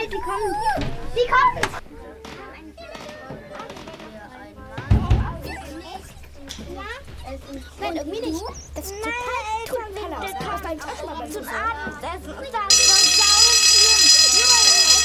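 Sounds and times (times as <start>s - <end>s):
children chattering and calling out: 0.0s - 15.0s
loud electric school bell ringing: 12.7s - 15.0s.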